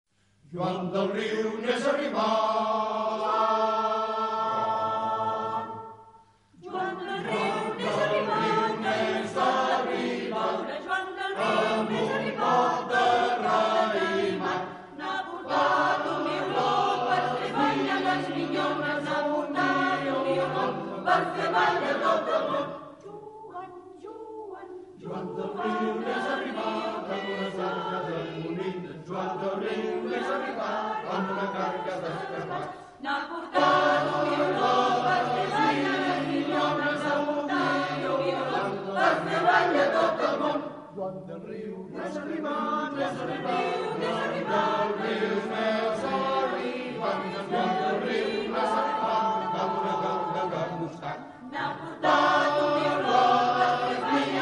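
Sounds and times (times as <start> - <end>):
choir: 0.4 - 54.4.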